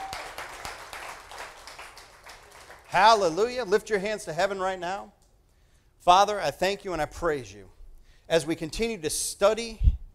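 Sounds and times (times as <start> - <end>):
congregation hand clapping during a church service: 0.0 - 4.0
speech: 2.9 - 5.2, 6.0 - 9.9.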